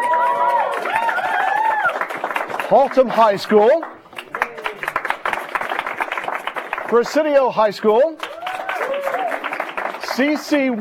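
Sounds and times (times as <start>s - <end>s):
high school students' drawn-out high whoops and shouts: 0.0s - 2.1s, 8.2s - 9.6s
high school students cheering as a crowd: 0.0s - 10.7s
speech: 2.7s - 3.9s, 6.9s - 8.2s, 10.2s - 10.7s.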